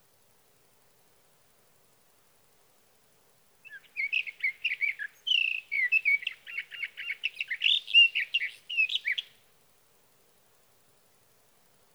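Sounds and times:
Sage thrasher warbling song: 3.7 - 9.3.

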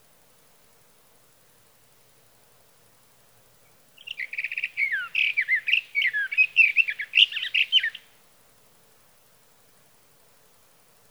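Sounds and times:
sage thrasher song: 4.0 - 8.0.

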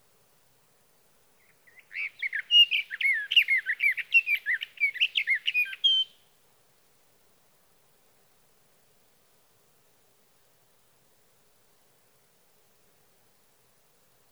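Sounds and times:
sage thrasher: 1.4 - 6.2.

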